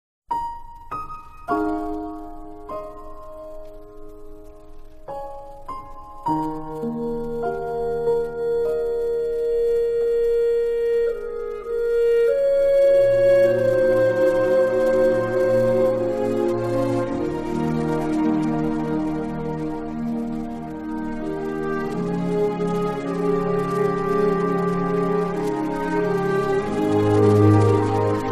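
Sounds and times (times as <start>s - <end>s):
instrumental music: 0.3s - 28.3s.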